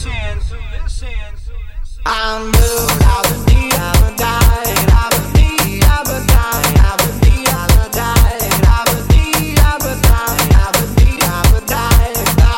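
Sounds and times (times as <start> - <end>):
Afrobeat drum: 2.6 - 12.5.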